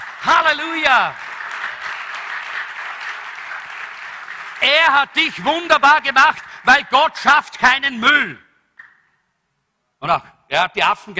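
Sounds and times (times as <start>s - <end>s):
audience applause: 0.0s - 6.8s
speech: 0.2s - 1.2s, 4.6s - 8.4s, 10.0s - 11.1s.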